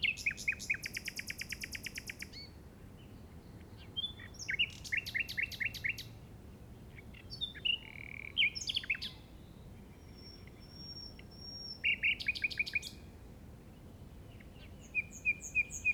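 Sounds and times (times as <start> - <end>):
common nightingale Luscinia megarhynchos singing in the Llobregat Delta: 0.0 - 2.5, 3.8 - 6.2, 6.9 - 13.1, 14.3 - 15.9.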